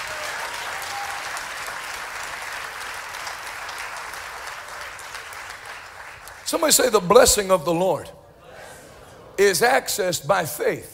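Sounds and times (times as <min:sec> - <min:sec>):
audience clapping hands: 0:00.0 - 0:07.1
speech: 0:06.5 - 0:08.2, 0:09.4 - 0:10.9.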